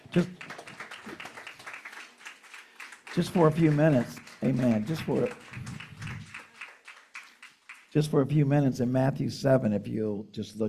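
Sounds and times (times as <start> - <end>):
audience hand clapping: 0.0 - 8.2
speech: 0.2 - 0.4, 3.2 - 5.4, 8.0 - 10.6.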